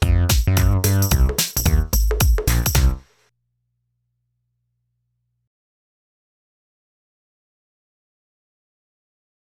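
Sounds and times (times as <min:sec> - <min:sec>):
rubbish rap music: 0:00.0 - 0:03.0.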